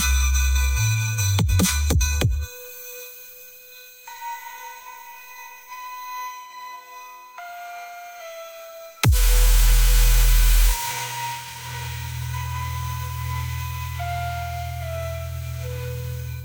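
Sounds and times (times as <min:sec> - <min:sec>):
bass: 0:00.0 - 0:02.6, 0:09.0 - 0:16.3.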